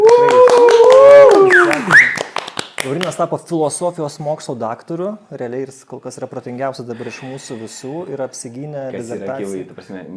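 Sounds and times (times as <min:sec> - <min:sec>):
people whooping: 0:00.0 - 0:02.2
people clapping for a defended doctoral dissertation: 0:00.0 - 0:03.3
speech: 0:03.2 - 0:10.1.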